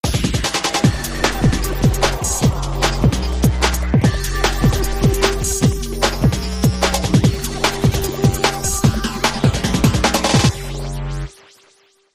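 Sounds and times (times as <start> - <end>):
drum and bass music: 0.0 - 11.8.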